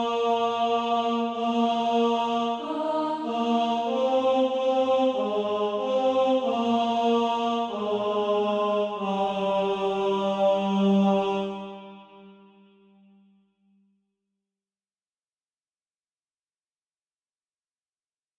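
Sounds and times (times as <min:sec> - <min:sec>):
tenor SATB practice part: 0:00.0 - 0:12.0.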